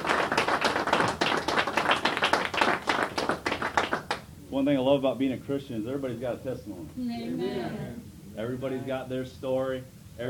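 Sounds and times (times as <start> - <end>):
audience hand clapping: 0.0 - 4.3
speech: 4.6 - 10.2.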